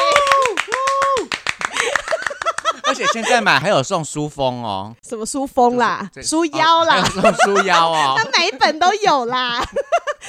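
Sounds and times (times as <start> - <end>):
hand clapping: 0.0 - 3.0
laughter: 1.7 - 3.8, 6.6 - 10.2
speech: 2.9 - 9.8.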